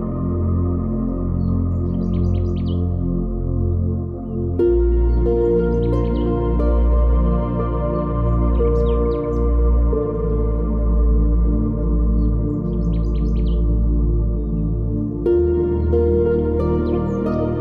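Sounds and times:
birds: 0.0 - 17.6
spa massage harp music: 0.0 - 17.6.

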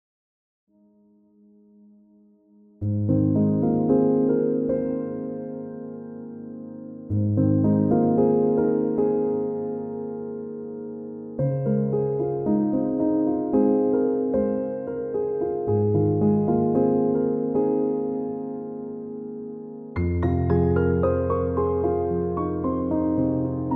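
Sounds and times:
chill piano music: 0.8 - 23.7.

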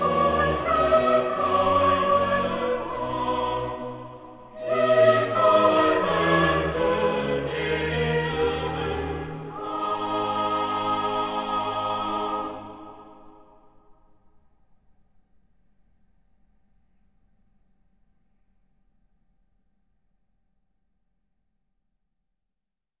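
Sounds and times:
choir singing: 0.0 - 13.9.

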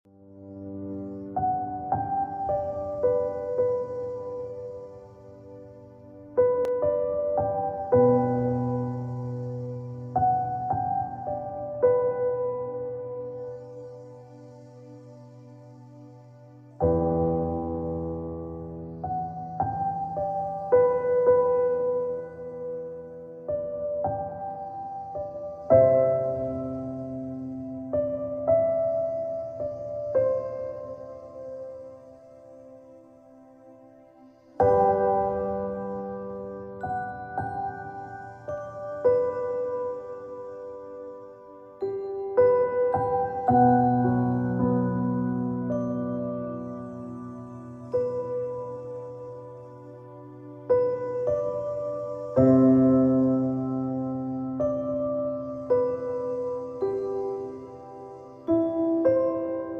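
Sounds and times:
relaxing piano: 0.0 - 59.7.

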